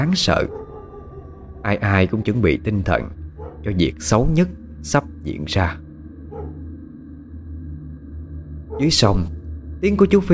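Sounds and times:
speech: 0:00.0 - 0:00.6, 0:01.6 - 0:05.8, 0:08.8 - 0:10.3
low rumbling drone: 0:00.0 - 0:10.3
dog barking: 0:00.2 - 0:01.3, 0:03.4 - 0:03.7, 0:06.3 - 0:06.6.

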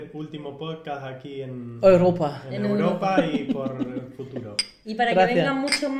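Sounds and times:
speech: 0:00.0 - 0:05.9
laughter: 0:02.6 - 0:04.6
glasses clinking in a toast: 0:04.5 - 0:04.8, 0:05.4 - 0:05.9.

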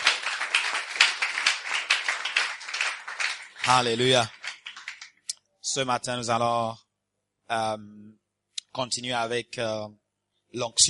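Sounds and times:
church congregation applauding newcomers: 0:00.0 - 0:05.3
speech: 0:03.6 - 0:04.4, 0:05.7 - 0:06.8, 0:07.5 - 0:08.2, 0:08.8 - 0:10.8.

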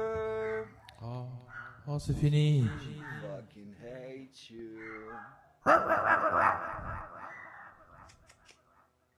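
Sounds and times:
dog barking: 0:00.4 - 0:01.9, 0:02.6 - 0:03.4, 0:04.8 - 0:08.1
speech: 0:02.0 - 0:03.0.

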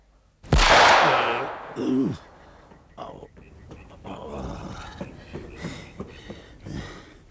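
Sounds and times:
pistol shots at night: 0:00.5 - 0:02.4
people talking: 0:00.8 - 0:02.3, 0:02.9 - 0:06.9.

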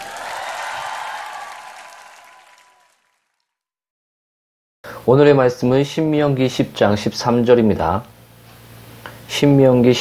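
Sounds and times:
audience applause: 0:00.0 - 0:03.4
speech: 0:05.0 - 0:08.1, 0:09.3 - 0:10.0.

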